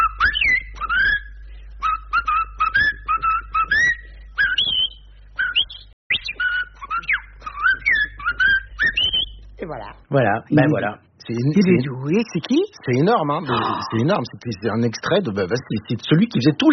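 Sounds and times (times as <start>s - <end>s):
person whistling an imitation of a blackbird's song: 0.0s - 9.4s
low steady hum: 0.0s - 16.7s
speech: 10.1s - 16.7s.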